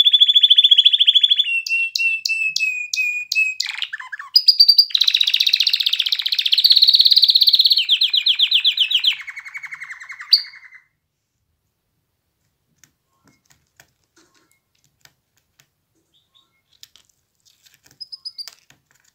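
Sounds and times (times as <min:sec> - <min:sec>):
canary singing: 0:00.0 - 0:11.0, 0:16.0 - 0:17.0, 0:17.9 - 0:18.7.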